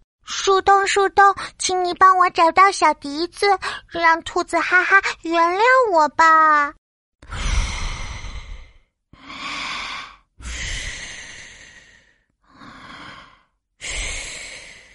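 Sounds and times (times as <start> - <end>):
speech: 0.5 - 7.4
steady breathing of someone asleep in a cave: 7.2 - 14.9.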